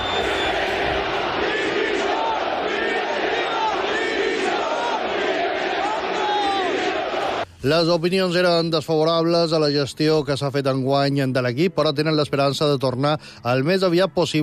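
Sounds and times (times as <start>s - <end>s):
Mallorca football fans chanting for the board's resignation: 0.0s - 7.5s
speech: 7.6s - 14.4s.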